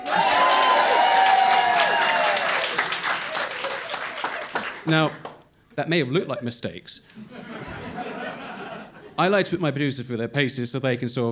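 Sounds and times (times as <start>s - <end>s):
live audience applause at a recorded live show: 0.0s - 5.4s
speech: 4.9s - 7.4s, 9.2s - 11.3s
laughter: 5.9s - 6.6s, 7.2s - 9.2s.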